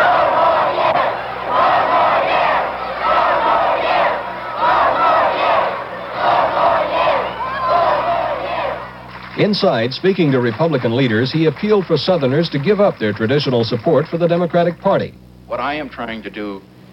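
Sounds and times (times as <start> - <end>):
anti-war demonstrators and president's supporters shouting: 0.0 - 12.8
speech: 9.4 - 16.8.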